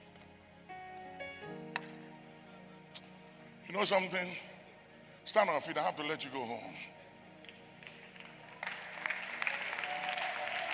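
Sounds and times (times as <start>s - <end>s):
speech: 3.7s - 4.5s, 5.3s - 7.0s
audience clapping: 7.4s - 10.7s.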